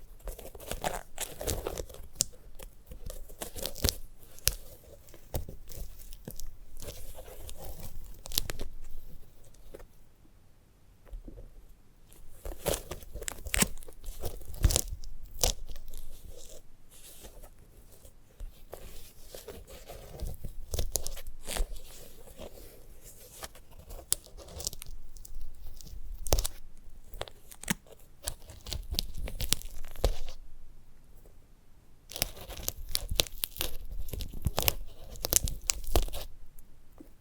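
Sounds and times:
sunflower head crunching and crackling: 0.0s - 10.0s, 12.0s - 30.5s, 32.1s - 37.1s.

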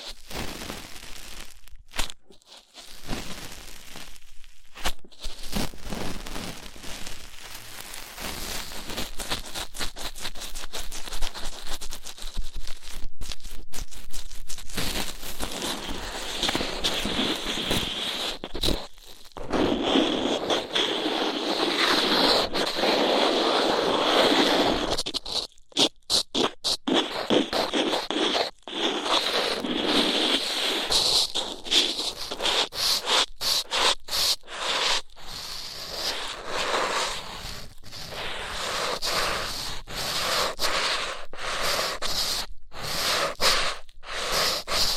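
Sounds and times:
rough ear cleaning rubbing and scratching: 8.8s - 44.9s.

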